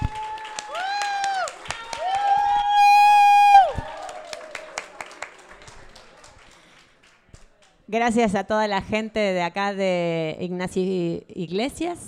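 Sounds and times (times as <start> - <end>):
people whooping and cheering: 0.0 - 5.2
audience clapping: 0.0 - 7.9
high held shout: 0.3 - 4.5
speech: 7.9 - 12.0.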